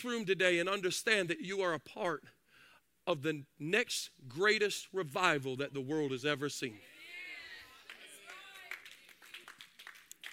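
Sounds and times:
speech: 0:00.0 - 0:02.4, 0:03.1 - 0:06.9
audience hand claps: 0:07.7 - 0:10.3.

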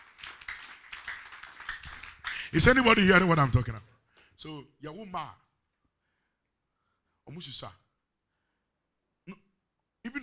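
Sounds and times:
audience clapping hands: 0:00.0 - 0:03.2
speech: 0:02.5 - 0:05.4, 0:07.3 - 0:07.8, 0:10.0 - 0:10.2.

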